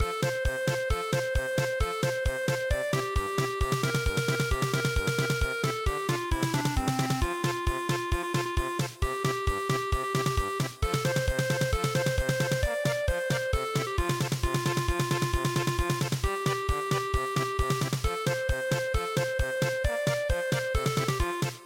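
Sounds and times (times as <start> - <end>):
house polka music: 0.0 - 21.6.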